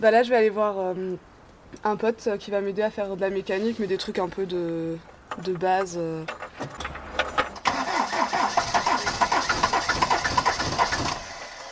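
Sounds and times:
speech: 0.0s - 6.7s
old vehicle engine starting and chugging in winter: 6.3s - 11.7s.

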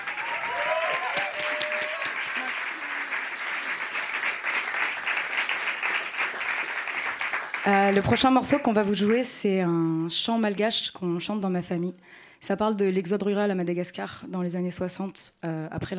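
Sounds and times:
voices whooping: 0.0s - 3.0s
large audience applause: 0.0s - 8.4s
speech: 7.6s - 15.9s.

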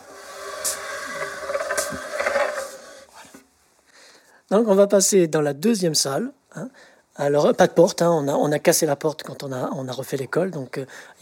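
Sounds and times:
table being pushed across the floor: 0.0s - 3.5s
speech: 4.5s - 11.1s.

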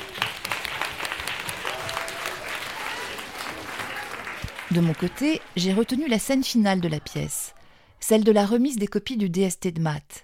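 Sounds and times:
audience applauding loudly: 0.0s - 7.6s
speech: 4.7s - 10.2s.

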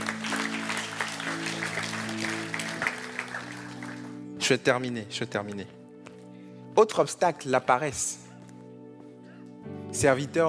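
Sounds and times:
audience applauding: 0.0s - 4.3s
speech: 4.5s - 5.8s, 6.8s - 8.2s, 9.9s - 10.4s.

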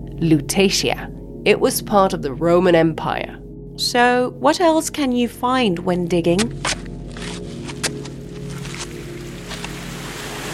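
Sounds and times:
speech: 0.2s - 6.8s
Seine river water flowing: 7.1s - 10.5s.

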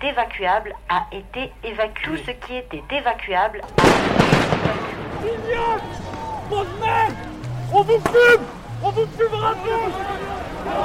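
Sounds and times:
speech: 0.0s - 10.8s
rumbling crowd: 3.6s - 10.8s
voices shouting: 3.6s - 10.8s
gendarmes' grenades being fired: 3.8s - 6.2s.

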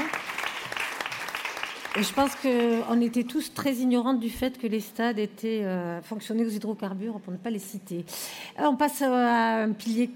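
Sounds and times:
audience applause: 0.0s - 2.9s
speech: 2.0s - 10.1s.

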